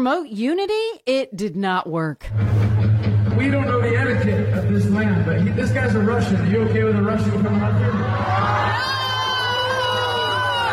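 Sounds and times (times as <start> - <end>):
speech: 0.0 - 2.6, 3.4 - 9.0
angry concert crowd shouting and roaring: 7.8 - 10.7.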